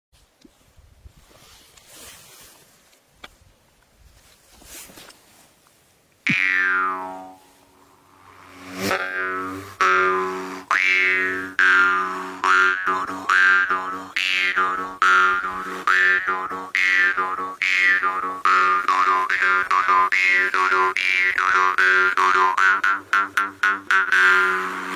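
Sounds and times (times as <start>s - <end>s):
mouth harp freestyle playing: 6.3s - 24.9s.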